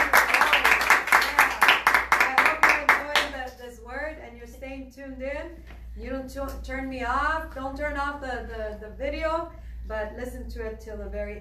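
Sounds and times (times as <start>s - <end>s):
studio audience clapping: 0.0s - 3.4s
speech: 5.5s - 11.3s.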